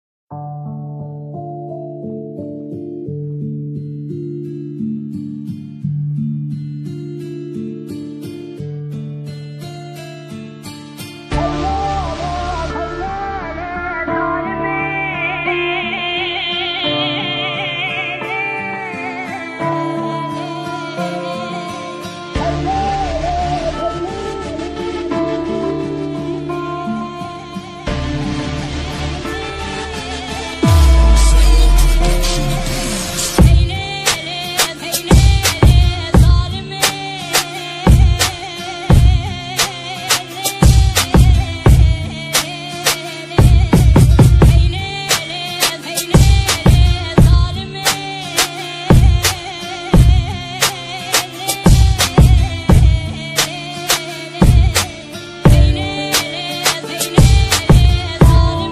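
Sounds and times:
new Kurdish trap music: 11.3s - 21.8s, 22.5s - 49.4s, 50.0s - 58.7s.

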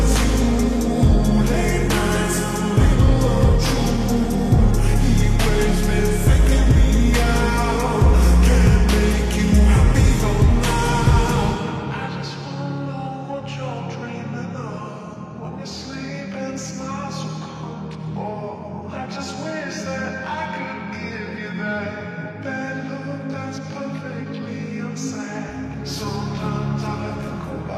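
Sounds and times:
slowed music with reverb: 0.0s - 27.7s.

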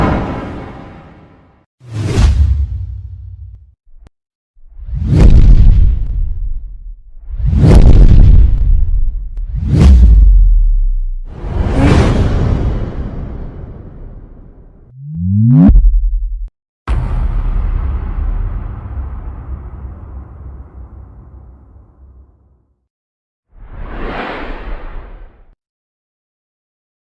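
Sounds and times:
bass sound effect: 1.9s - 22.1s.

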